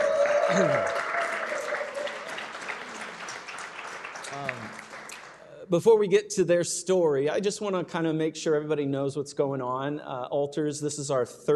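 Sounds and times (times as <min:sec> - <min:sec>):
audience applause welcoming two invited guests: 0:00.0 - 0:05.5
speech: 0:00.5 - 0:01.0, 0:05.7 - 0:11.5.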